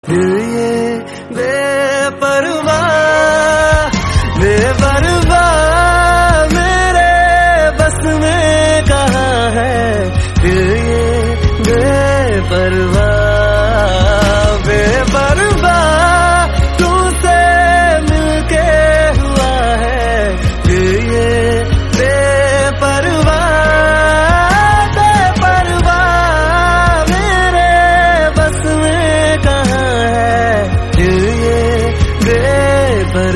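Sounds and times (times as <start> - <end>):
Hindi song: 0.0 - 33.3.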